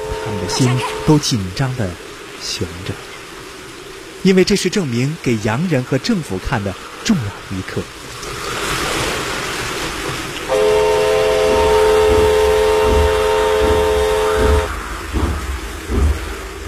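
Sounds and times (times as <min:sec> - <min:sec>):
train horn blast: 0:00.0 - 0:01.3, 0:10.5 - 0:14.8
train rumbling on tracks: 0:00.0 - 0:03.1, 0:04.5 - 0:16.6
speech: 0:00.3 - 0:03.1, 0:04.2 - 0:08.2.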